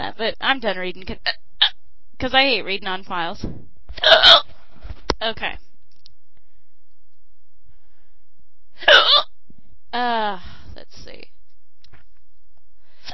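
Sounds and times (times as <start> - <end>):
speech: 0.2 - 1.4, 2.2 - 4.4, 5.2 - 5.6, 9.9 - 11.3
hiccups: 4.0 - 4.5, 8.8 - 9.3.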